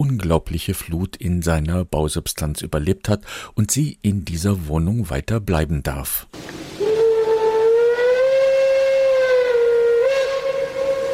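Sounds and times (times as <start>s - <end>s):
speech: 0.0s - 6.6s
locomotive whistle: 6.8s - 11.1s.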